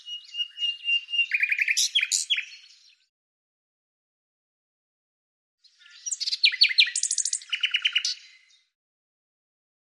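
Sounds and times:
bird song with scratchy notes and a run of high sharp notes: 0.0s - 3.1s, 5.6s - 8.8s.

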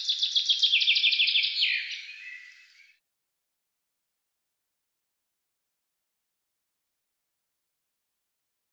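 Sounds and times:
bird giving a fast run of sharp high chirps: 0.0s - 3.0s.

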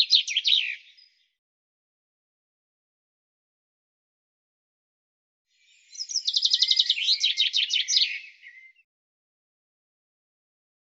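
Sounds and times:
bird song: 0.0s - 1.4s, 5.5s - 8.9s.

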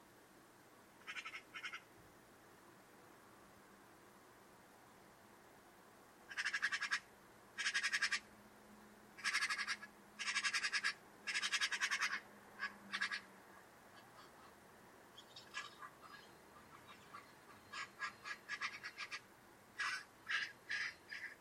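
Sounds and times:
buzzy harsh bird call: 1.0s - 1.9s, 6.3s - 8.2s, 9.2s - 13.3s, 15.2s - 21.3s.

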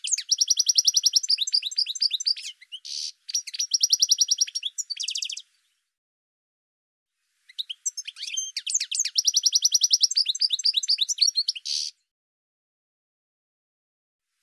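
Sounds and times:
bird song with high chirps, down-slurred notes and quick trills: 0.0s - 6.0s, 7.2s - 12.1s.

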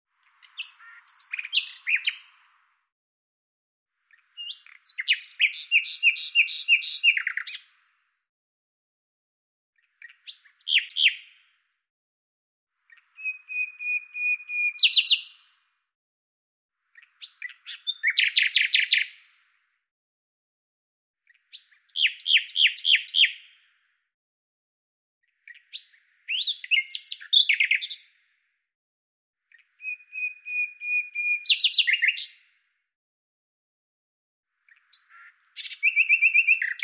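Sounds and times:
Common nightingale singing: 0.2s - 2.6s, 4.1s - 7.8s, 9.8s - 11.4s, 12.9s - 15.6s, 17.0s - 19.4s, 21.3s - 23.6s, 25.3s - 28.1s, 29.5s - 32.5s, 34.6s - 36.8s.

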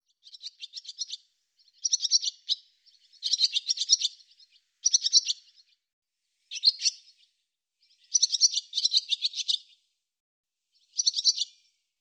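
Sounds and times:
barn swallow twittering: 0.2s - 5.8s, 6.5s - 9.7s, 10.8s - 11.6s.

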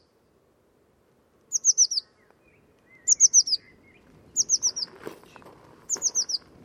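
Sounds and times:
bird song with rapid high sharply falling notes: 1.7s - 6.5s.

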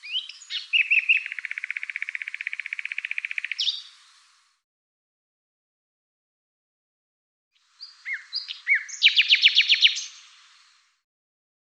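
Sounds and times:
bird chirps and high thin whistles: 0.0s - 3.9s, 8.0s - 10.1s.

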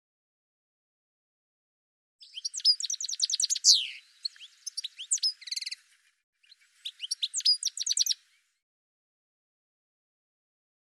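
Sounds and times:
bird twittering chirps and trills: 2.2s - 8.5s.

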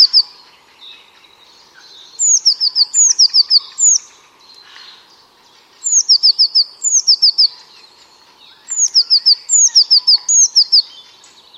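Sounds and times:
bird giving high thin descending chirps: 0.0s - 11.5s.

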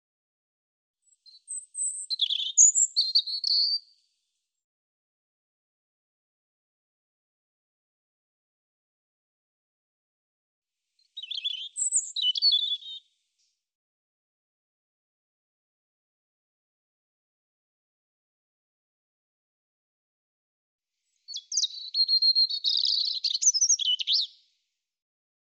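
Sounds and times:
European robin singing: 1.1s - 3.9s, 11.0s - 13.0s, 21.3s - 24.4s.

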